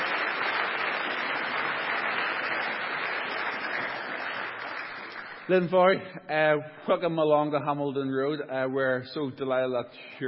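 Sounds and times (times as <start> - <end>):
audience applause: 0.0 - 5.7
speech: 5.5 - 10.2.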